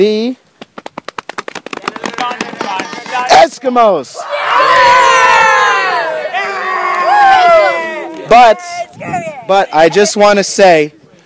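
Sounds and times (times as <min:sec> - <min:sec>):
speech: 0:00.0 - 0:00.4, 0:03.2 - 0:05.0, 0:08.3 - 0:11.0
scouts cheering as their patrol wins the Montezuma Spoon cooking award: 0:04.2 - 0:09.9.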